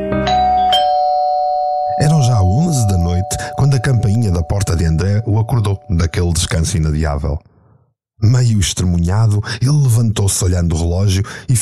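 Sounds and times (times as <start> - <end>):
electronic doorbell ringing: 0.2 - 6.2
speech: 6.7 - 7.5, 8.2 - 11.6.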